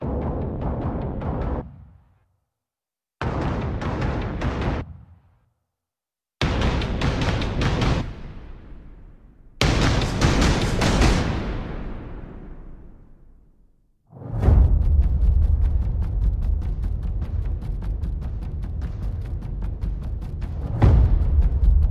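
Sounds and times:
drums: 0.0s - 2.0s, 3.2s - 5.2s, 6.4s - 8.8s, 9.6s - 12.5s, 14.4s - 21.8s.

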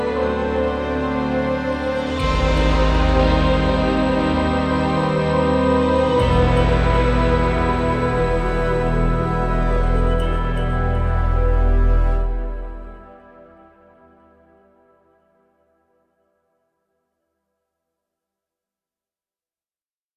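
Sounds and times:
heavy ambient music: 0.0s - 15.8s.

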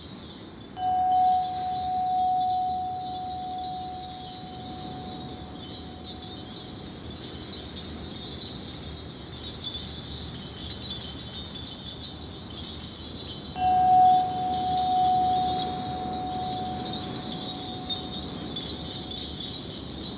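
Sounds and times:
Tibetan singing bowls: 0.0s - 20.1s
bells: 0.0s - 20.1s
wind: 0.0s - 20.1s
gongs: 0.8s - 6.7s, 13.6s - 20.0s.

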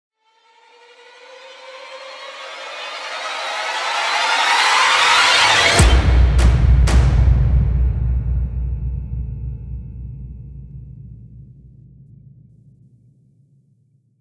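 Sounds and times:
epic rising damage impact effect: 4.0s - 12.7s.

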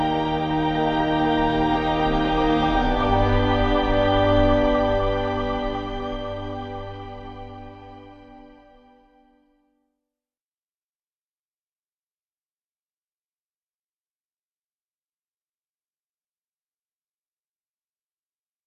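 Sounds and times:
ambient music: 0.0s - 9.5s.

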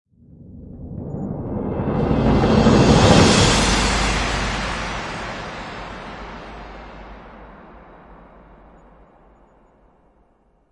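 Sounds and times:
big crescendo: 1.5s - 7.9s.

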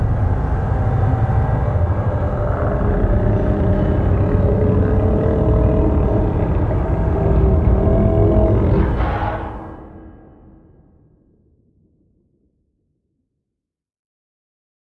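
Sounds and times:
subterranean rumbling: 0.0s - 11.4s.

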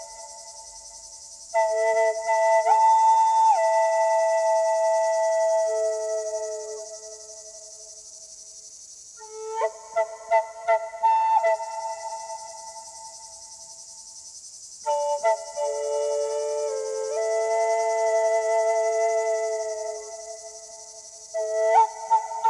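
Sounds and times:
Native American flutes: 0.0s - 0.5s, 1.6s - 7.5s, 9.2s - 13.2s, 14.9s - 22.4s
cicada calling in the evening: 0.0s - 22.4s
sounds of nature: 0.0s - 22.4s.

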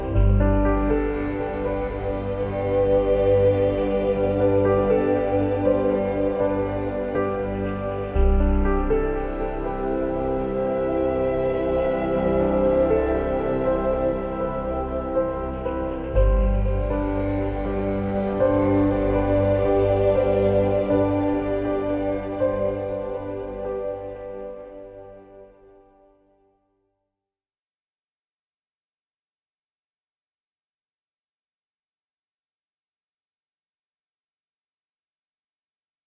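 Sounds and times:
contentment ambient music: 0.0s - 26.4s.

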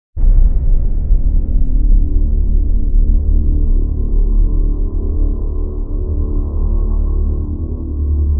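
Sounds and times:
booming drone: 0.2s - 8.3s.

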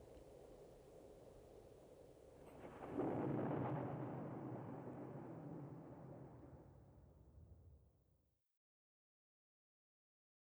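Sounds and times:
thunder on a warm summer evening: 2.6s - 6.8s.

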